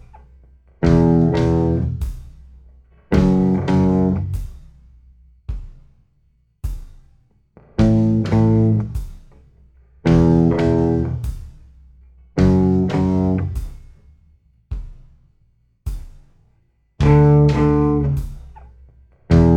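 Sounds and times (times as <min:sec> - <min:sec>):
slow guitar riff: 0:00.8 - 0:02.0, 0:03.2 - 0:04.3, 0:07.8 - 0:08.9, 0:10.1 - 0:11.2, 0:12.4 - 0:13.5, 0:17.0 - 0:18.2, 0:19.3 - 0:19.5.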